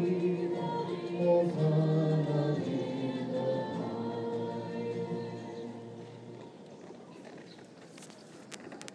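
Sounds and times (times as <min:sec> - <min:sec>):
hymn sung at grotto mass in Lourdes: 0:00.0 - 0:06.6.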